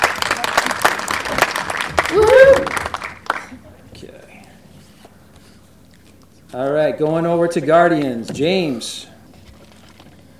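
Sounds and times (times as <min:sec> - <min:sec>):
audience applause: 0:00.0 - 0:03.6
speech: 0:06.6 - 0:09.1.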